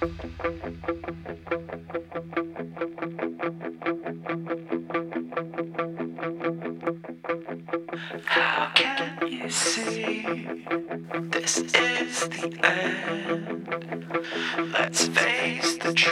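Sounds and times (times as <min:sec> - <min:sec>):
sustained low rumble: 0:00.0 - 0:02.2
heavy alternative rock intro with distorted guitar chords: 0:00.0 - 0:16.1.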